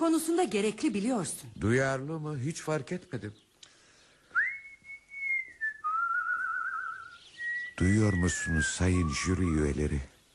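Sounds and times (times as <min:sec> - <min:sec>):
speech: 0:00.0 - 0:03.4, 0:07.8 - 0:10.1
person whistling a tune: 0:04.3 - 0:09.5.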